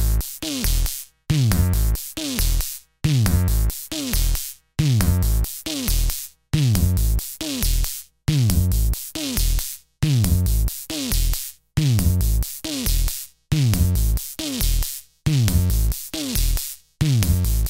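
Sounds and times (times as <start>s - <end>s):
raw beat from a quad analog drum synthesizer: 0.0s - 17.6s.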